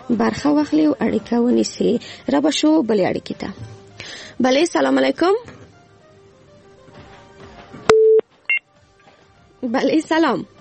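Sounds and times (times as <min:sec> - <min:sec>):
speech: 0:00.1 - 0:05.5, 0:09.7 - 0:10.6
telephone beeps after a call is disconnected: 0:07.9 - 0:08.7.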